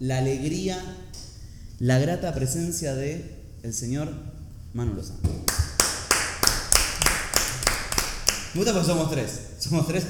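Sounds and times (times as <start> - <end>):
speech: 0.0 - 1.2, 1.8 - 5.6, 8.5 - 10.0
hands clapping forcefully: 5.2 - 8.6.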